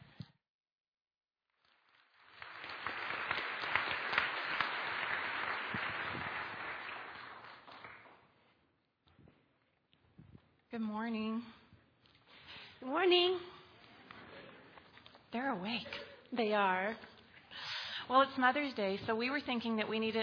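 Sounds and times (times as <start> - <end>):
church congregation applauding at a Mother's Day service: 1.6 - 8.4
speech: 10.8 - 11.6, 12.8 - 13.5, 15.3 - 17.1, 18.1 - 20.2.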